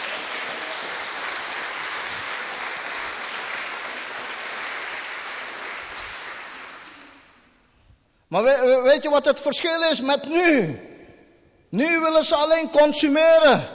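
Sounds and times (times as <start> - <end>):
audience applause: 0.0 - 7.4
speech: 8.3 - 10.9, 11.7 - 13.7.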